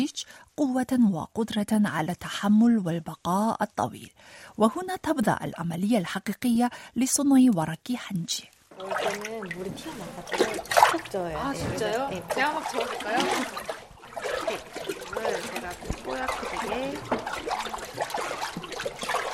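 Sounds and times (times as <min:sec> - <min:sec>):
speech: 0:00.0 - 0:14.5, 0:15.3 - 0:17.1
water splashing as hanji paper pulp is stirred with a flat paddle in a wooden vat: 0:08.6 - 0:19.3.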